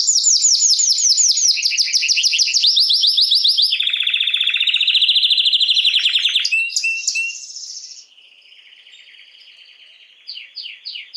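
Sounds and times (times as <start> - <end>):
canary singing buzzy trill: 0.0 - 8.1.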